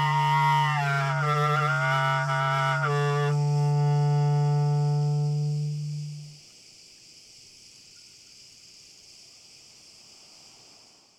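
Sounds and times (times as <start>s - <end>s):
rough tone playing: 0.0s - 6.3s.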